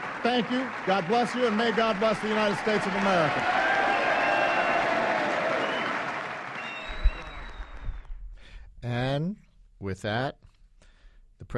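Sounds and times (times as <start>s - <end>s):
room full of Democrats applauding and cheering: 0.0s - 8.2s
speech: 0.2s - 3.6s, 9.8s - 10.4s.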